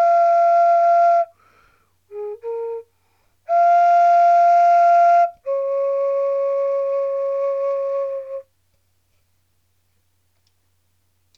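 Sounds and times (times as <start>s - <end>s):
flute music before a debate: 0.0s - 1.3s, 2.1s - 2.9s, 3.5s - 8.5s.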